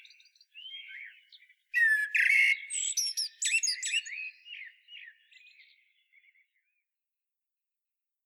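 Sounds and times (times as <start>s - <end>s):
common blackbird singing: 0.0s - 6.4s.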